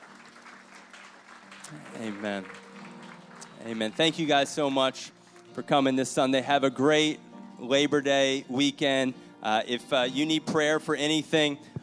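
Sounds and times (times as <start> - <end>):
crowd audience clapping hands: 0.0 - 5.7
speech: 1.7 - 2.6, 3.6 - 11.7.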